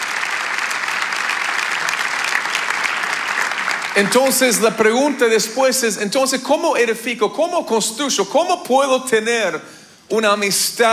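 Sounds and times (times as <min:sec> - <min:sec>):
audience applause: 0:00.0 - 0:05.5
speech: 0:04.0 - 0:10.9.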